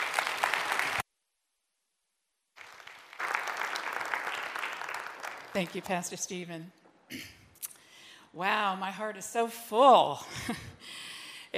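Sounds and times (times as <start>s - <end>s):
church congregation at Bethany Assembly of God applauding to welcome a guest speaker: 0.0s - 1.0s, 2.6s - 6.2s
speech: 5.6s - 7.4s, 8.4s - 11.0s.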